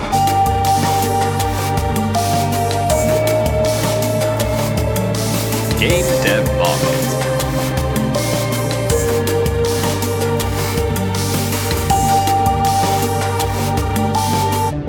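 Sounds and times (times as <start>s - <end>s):
battle music: 0.1s - 14.7s.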